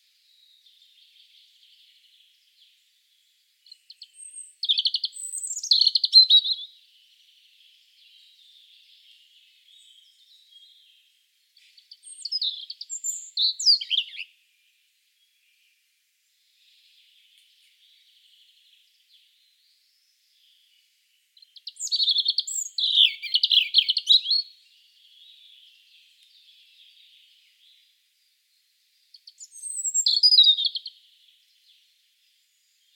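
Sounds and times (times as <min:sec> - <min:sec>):
European robin singing: 0:00.1 - 0:32.9.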